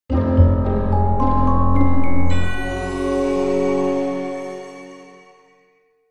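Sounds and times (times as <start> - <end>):
puzzle solved jingle: 0.8 - 5.2.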